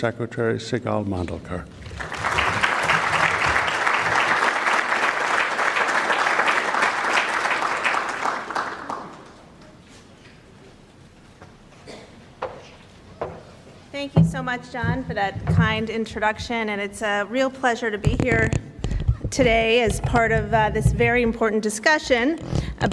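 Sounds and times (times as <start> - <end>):
speech: 0.0 - 2.0, 14.5 - 18.6, 19.3 - 22.9
audience applause: 1.8 - 9.6.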